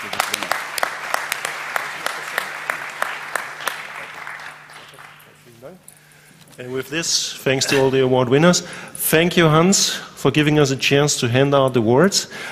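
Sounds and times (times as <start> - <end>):
crowd applause: 0.0 - 5.7
speech: 6.6 - 12.4.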